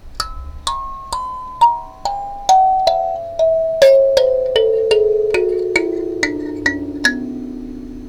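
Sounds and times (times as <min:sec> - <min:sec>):
kalimba: 0:00.0 - 0:08.0.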